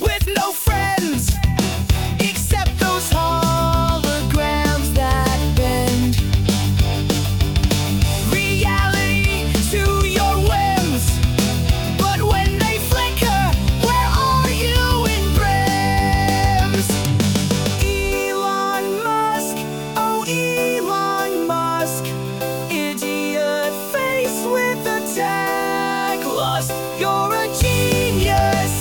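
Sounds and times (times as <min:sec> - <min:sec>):
punk rock music: 0:00.0 - 0:28.7.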